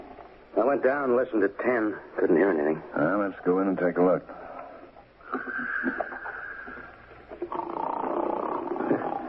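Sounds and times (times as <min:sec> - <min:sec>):
speech: 0:00.7 - 0:04.4
man snoring loudly: 0:07.5 - 0:09.2.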